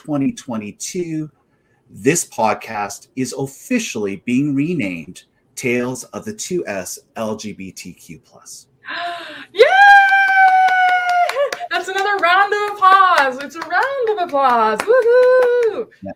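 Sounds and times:
speech: 0.0s - 9.7s, 11.8s - 16.1s
cheering: 9.6s - 11.6s, 14.8s - 15.9s
clapping: 9.9s - 15.9s.

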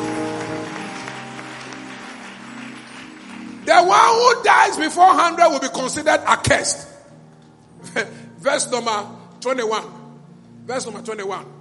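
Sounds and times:
audience clapping: 0.0s - 4.8s
speech: 3.8s - 7.0s, 8.0s - 10.0s, 10.7s - 11.5s.

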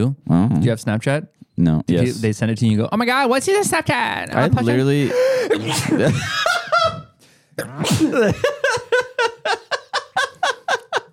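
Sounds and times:
speech: 0.0s - 6.6s, 7.6s - 9.6s
loud explosive sneezes: 5.4s - 6.2s, 7.6s - 8.4s
quick rhythmic laughter: 5.9s - 7.2s, 8.2s - 11.1s.

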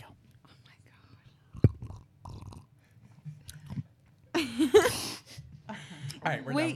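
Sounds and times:
person chewing crunchy Oreo cookies: 1.6s - 2.7s
speech: 4.7s - 5.1s, 6.2s - 6.7s.

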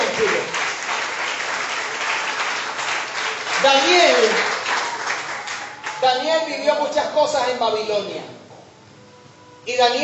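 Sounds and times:
crowd applauding: 0.0s - 6.3s
speech: 3.6s - 4.5s, 6.1s - 8.4s, 9.6s - 10.0s.

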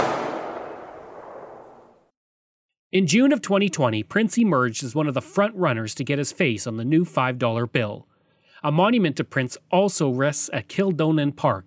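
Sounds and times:
Princess Patricia's Canadian Light Infantry rifle volley as funeral salute: 0.0s - 2.0s
speech: 2.9s - 11.6s.

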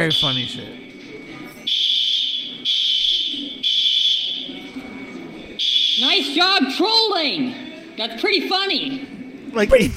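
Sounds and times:
speech: 0.0s - 0.9s, 6.0s - 9.9s
voices murmuring: 0.0s - 9.9s
fire alarm ringing: 1.7s - 4.6s, 5.6s - 6.4s.

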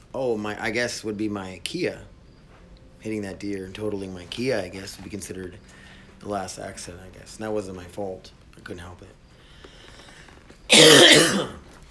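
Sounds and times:
speech: 0.2s - 2.1s, 3.0s - 9.2s, 10.7s - 11.6s
throat clearing and coughing: 10.7s - 11.7s.

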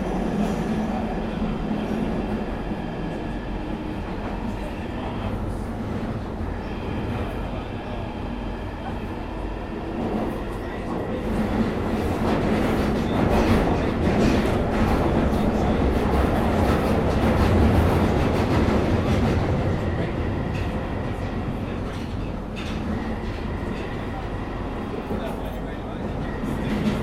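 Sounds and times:
train rumbling: 0.0s - 27.0s.

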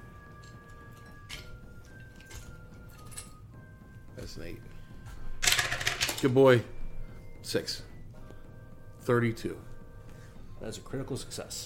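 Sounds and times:
speech: 4.3s - 4.8s, 6.2s - 6.8s, 7.4s - 7.9s, 9.0s - 9.7s, 10.6s - 11.6s
dice rolled during a tabletop role-playing game: 5.4s - 6.2s.

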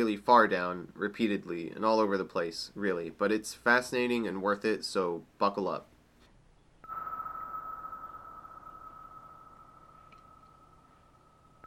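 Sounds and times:
speech: 0.0s - 5.9s
sonar ping: 6.8s - 11.6s.

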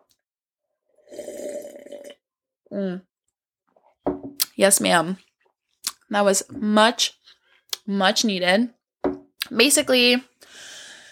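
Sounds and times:
slurping sip of wine: 1.0s - 2.2s
speech: 2.8s - 3.1s, 4.6s - 5.3s, 6.1s - 7.2s, 7.9s - 8.8s, 9.5s - 10.7s.

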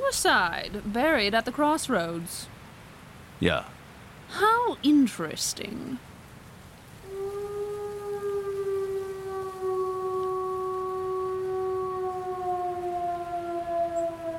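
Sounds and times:
speech: 0.1s - 2.6s, 3.4s - 6.1s
wolf howling: 7.0s - 14.3s.

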